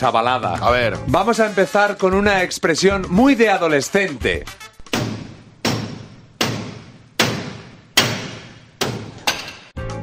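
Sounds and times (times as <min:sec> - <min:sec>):
speech: 0:00.0 - 0:04.7
hammering: 0:04.8 - 0:09.7.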